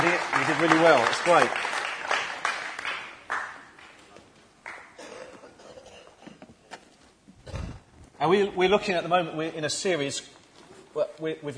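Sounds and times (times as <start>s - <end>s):
audience applause: 0.0s - 4.0s
speech: 0.1s - 1.8s, 8.2s - 10.4s, 11.0s - 11.5s.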